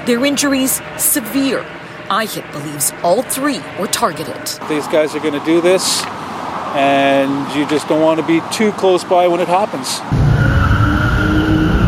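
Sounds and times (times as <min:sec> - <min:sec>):
speech: 0:00.0 - 0:10.3
white SUV tires screeching as it speeds off: 0:01.6 - 0:11.8.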